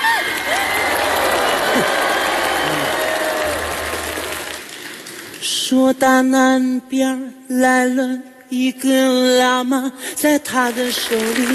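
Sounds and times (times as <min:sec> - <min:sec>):
audience clapping: 0:00.0 - 0:05.5, 0:10.6 - 0:11.5
speech: 0:05.7 - 0:11.5.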